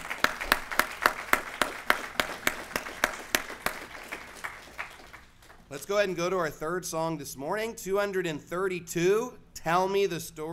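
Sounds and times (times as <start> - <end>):
audience applause: 0.0 - 5.7
speech: 5.7 - 10.5.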